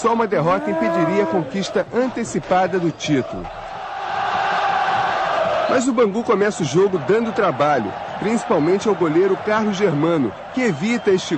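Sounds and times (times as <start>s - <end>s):
speech: 0.0s - 3.6s, 5.7s - 11.3s
stadium crowd cheering: 0.0s - 11.3s.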